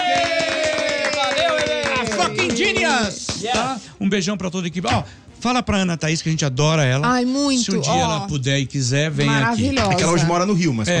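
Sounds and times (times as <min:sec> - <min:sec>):
voices cheering: 0:00.0 - 0:03.7
people clapping: 0:00.0 - 0:03.8
speech: 0:03.0 - 0:10.9.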